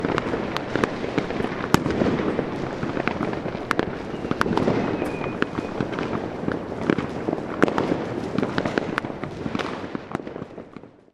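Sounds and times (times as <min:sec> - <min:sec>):
large fireworks: 0:00.0 - 0:11.0.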